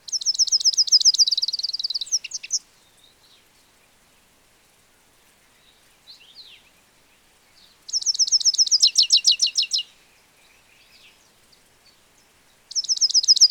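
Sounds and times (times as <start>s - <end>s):
European goldfinch Carduelis carduelis trilled calls: 0.1s - 2.6s, 7.9s - 9.9s, 12.7s - 13.4s.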